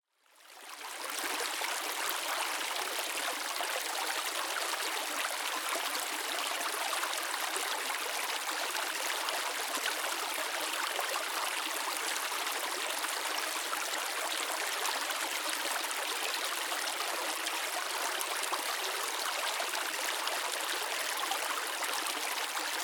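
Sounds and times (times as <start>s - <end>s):
small water stream in Scotland: 0.2s - 22.8s.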